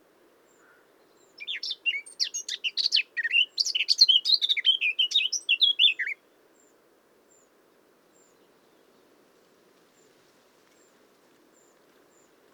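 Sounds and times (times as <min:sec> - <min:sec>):
Eurasian blackcap singing: 0:01.4 - 0:06.2.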